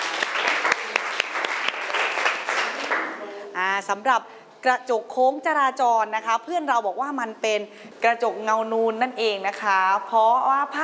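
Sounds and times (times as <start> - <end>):
classroom applause: 0.0 - 3.3
speech: 3.8 - 10.8.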